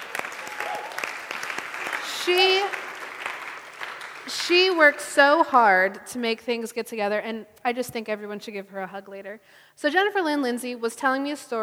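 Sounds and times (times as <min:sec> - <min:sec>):
audience clapping: 0:00.0 - 0:05.2
speech: 0:02.3 - 0:02.6, 0:04.5 - 0:11.6.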